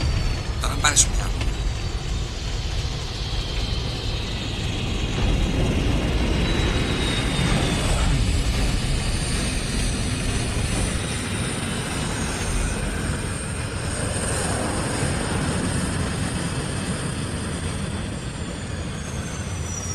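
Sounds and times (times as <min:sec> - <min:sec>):
thin whining airplane engine tones: 0:00.0 - 0:15.9
airplane roaring during a high-speed landing: 0:00.0 - 0:19.9
speech: 0:01.0 - 0:01.2.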